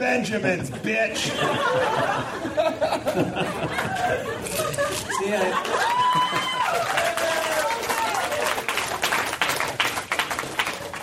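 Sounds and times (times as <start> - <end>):
speech: 0.0 - 6.9
laughter: 0.4 - 8.2
audience applause: 5.2 - 11.0.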